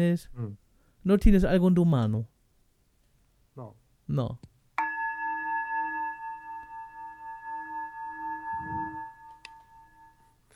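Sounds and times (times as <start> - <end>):
speech: 0.0 - 2.3, 3.6 - 4.5
digital gong strike: 4.8 - 10.1.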